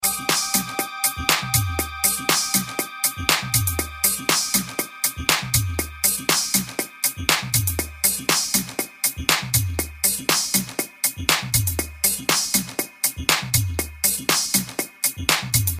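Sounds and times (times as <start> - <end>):
phat funk music: 0.0 - 15.7.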